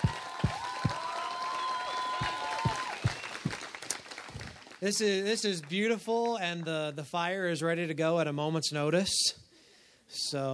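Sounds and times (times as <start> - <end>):
audience applause: 0.0 - 6.5
speech: 4.8 - 9.4, 10.1 - 10.5.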